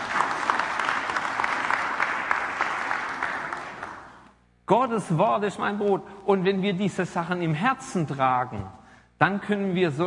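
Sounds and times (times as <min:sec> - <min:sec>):
audience applause: 0:00.0 - 0:04.3
speech: 0:04.7 - 0:10.0.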